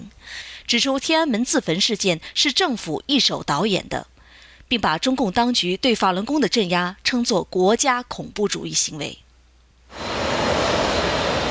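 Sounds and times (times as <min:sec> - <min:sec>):
speech: 0:00.2 - 0:04.1, 0:04.7 - 0:09.2
jet aircraft roar at Los Angeles International Airport: 0:09.9 - 0:11.4.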